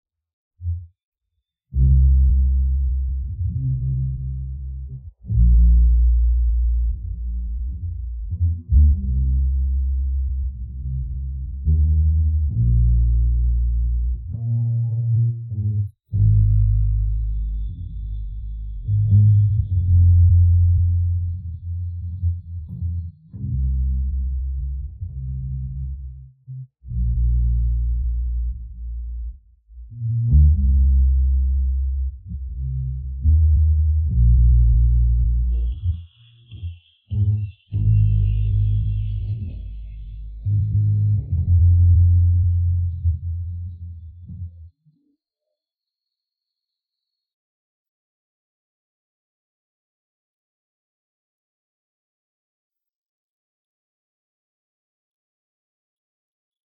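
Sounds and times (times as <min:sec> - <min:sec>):
bass: 0:00.6 - 0:01.0, 0:01.7 - 0:45.0.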